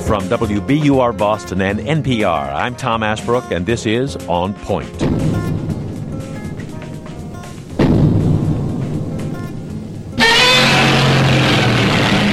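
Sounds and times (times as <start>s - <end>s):
speech: 0.1s - 5.3s
Godzilla stomping: 5.0s - 9.3s, 10.2s - 12.2s
Godzilla roaring: 10.2s - 12.2s.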